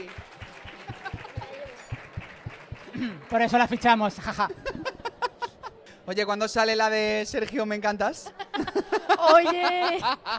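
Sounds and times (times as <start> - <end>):
small audience clapping in a steady even rhythm: 0.0 - 4.3
laughter: 0.7 - 2.0, 4.2 - 6.0, 8.2 - 10.3
speech: 3.0 - 4.9, 6.1 - 10.3.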